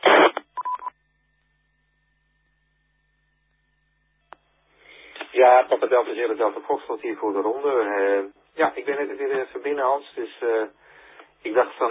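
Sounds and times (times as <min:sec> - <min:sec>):
radio noise: 0:00.0 - 0:00.4, 0:05.1 - 0:10.7, 0:11.5 - 0:11.8
DTMF keypad tones of an EchoLink connection: 0:00.4 - 0:00.9
speech: 0:05.4 - 0:10.8, 0:11.4 - 0:11.8.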